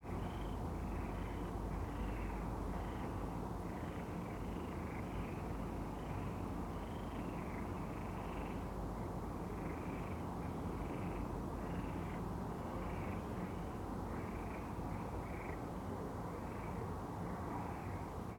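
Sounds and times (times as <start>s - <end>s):
city park ambience at night: 0.0s - 18.3s.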